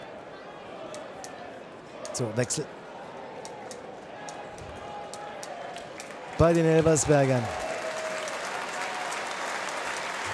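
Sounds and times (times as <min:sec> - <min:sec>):
speech: 0:02.2 - 0:02.8, 0:06.4 - 0:07.6
stadium crowd applause: 0:04.9 - 0:10.3.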